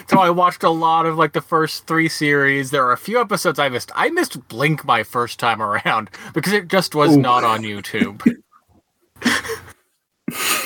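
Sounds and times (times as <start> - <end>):
speech: 0.1 - 8.4
person sneezing: 7.0 - 7.8.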